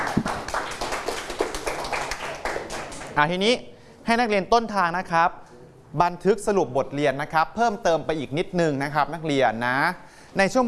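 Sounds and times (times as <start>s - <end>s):
students clapping hands: 0.0s - 3.2s
speech: 3.2s - 10.6s.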